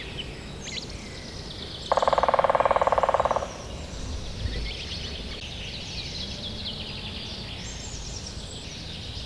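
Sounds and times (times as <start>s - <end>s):
Grey-headed woodpecker Picus canus drumming: 1.7s - 5.4s.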